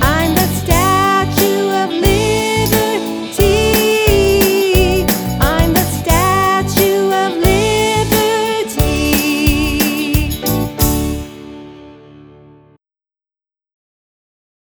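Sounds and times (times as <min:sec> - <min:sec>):
vocals: 0:00.0 - 0:11.1.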